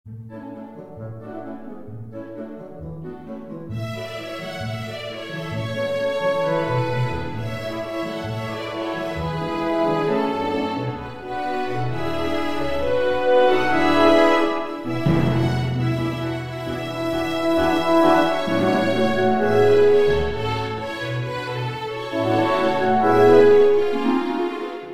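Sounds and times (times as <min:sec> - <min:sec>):
chamber orchestra playing: 0:00.3 - 0:24.9.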